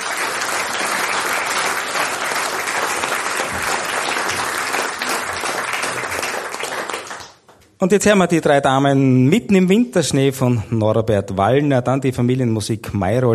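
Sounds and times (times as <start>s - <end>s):
audience applause: 0.0s - 7.6s
speech: 7.8s - 13.3s.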